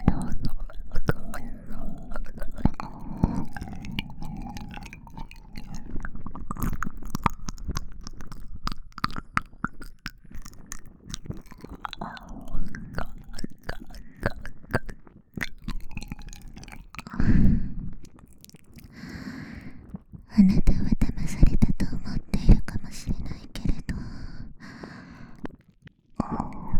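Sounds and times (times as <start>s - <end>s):
binaural whispering ASMR: 0.0s - 4.1s, 20.3s - 24.6s, 26.2s - 26.7s
binaural ear licking ASMR: 0.0s - 21.2s.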